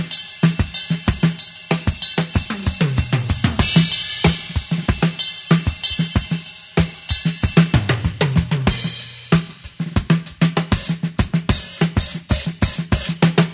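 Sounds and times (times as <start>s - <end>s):
percussion: 0.0s - 13.5s.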